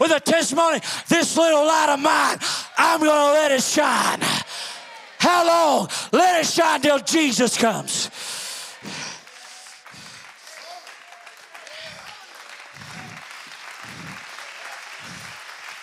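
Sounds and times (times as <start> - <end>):
speech: 0.0 - 4.5, 5.3 - 8.2
audience applauding, hand clapping: 8.1 - 15.8.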